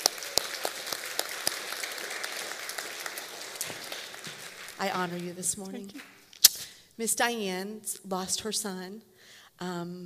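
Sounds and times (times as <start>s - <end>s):
audience clapping: 0.0s - 6.3s
speech: 4.8s - 6.2s, 7.0s - 10.0s.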